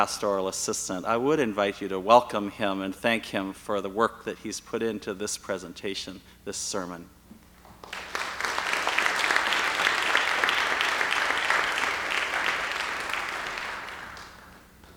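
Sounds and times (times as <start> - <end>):
speech: 0.0 - 7.2
audience applause: 7.8 - 14.7.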